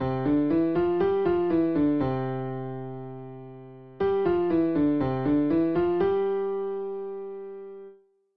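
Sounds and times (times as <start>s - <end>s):
piano played with both hands: 0.0s - 7.9s.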